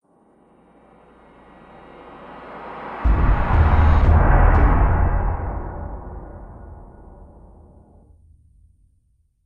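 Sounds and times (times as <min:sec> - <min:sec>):
fantasy trailer impact stinger: 0:01.0 - 0:08.2.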